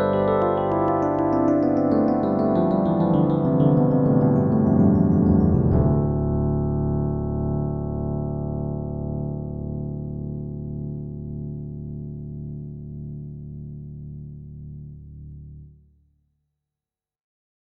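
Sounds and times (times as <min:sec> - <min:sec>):
electric piano: 0:00.0 - 0:13.6.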